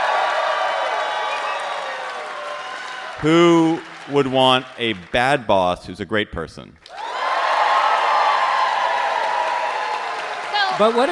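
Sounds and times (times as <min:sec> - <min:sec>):
crowd cheering and whooping: 0:00.0 - 0:05.8, 0:06.9 - 0:11.0
speech: 0:03.2 - 0:07.0, 0:10.8 - 0:11.0.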